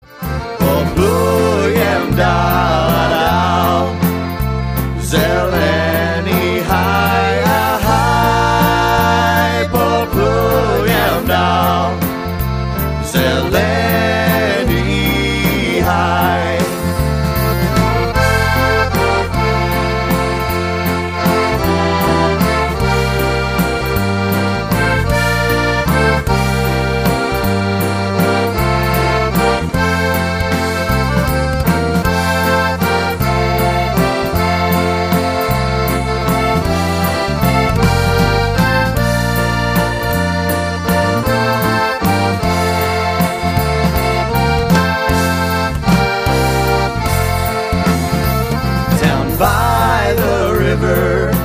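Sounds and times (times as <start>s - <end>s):
waltz music: 0.0s - 51.4s.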